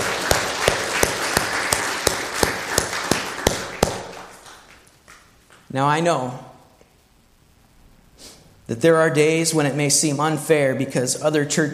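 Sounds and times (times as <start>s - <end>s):
scattered applause: 0.0s - 4.8s
audience clapping in rhythm: 0.0s - 5.6s
speech: 5.7s - 6.5s, 8.7s - 11.7s.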